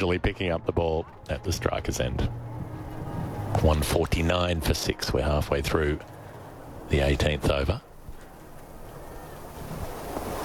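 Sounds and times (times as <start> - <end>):
speech: 0.0 - 2.5, 3.5 - 6.1, 6.9 - 7.9
wind buffeting microphone: 1.2 - 4.2, 5.6 - 10.4.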